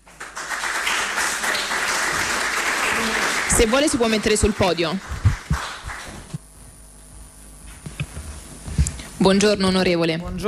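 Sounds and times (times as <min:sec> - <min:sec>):
audience applause: 0:00.0 - 0:06.4
speech: 0:03.6 - 0:05.2, 0:09.2 - 0:10.4.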